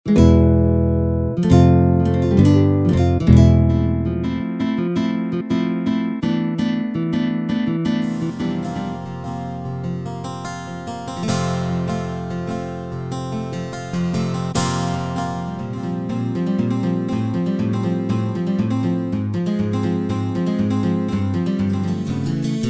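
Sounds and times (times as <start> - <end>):
guitar: 0.0 - 22.6.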